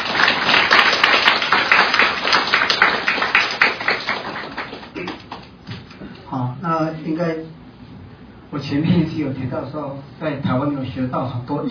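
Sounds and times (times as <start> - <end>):
crowd applause: 0.0 - 5.5
speech: 7.2 - 7.6, 8.5 - 11.6.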